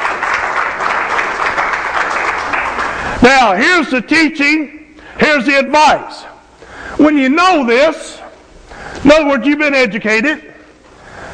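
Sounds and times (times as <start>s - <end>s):
audience applause: 0.0s - 3.1s
speech: 3.2s - 6.3s, 7.0s - 8.1s, 9.0s - 10.5s.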